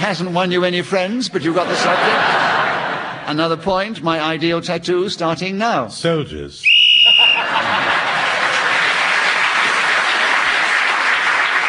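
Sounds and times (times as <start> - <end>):
speech: 0.0 - 6.8
laughter: 1.4 - 3.4, 7.0 - 10.8
high-pitched whistle blast ending the round: 6.6 - 7.5
audience applause: 7.0 - 11.6.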